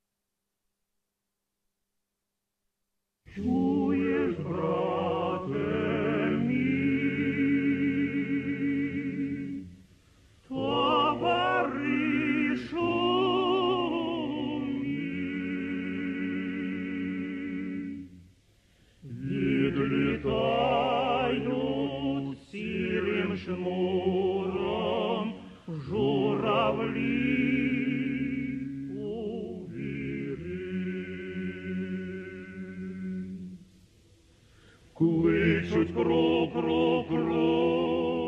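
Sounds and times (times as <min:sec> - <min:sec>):
Ukrainian opera singer singing a Ukrainian art song: 0:03.3 - 0:09.6, 0:10.5 - 0:18.0, 0:19.0 - 0:33.4, 0:35.0 - 0:38.2.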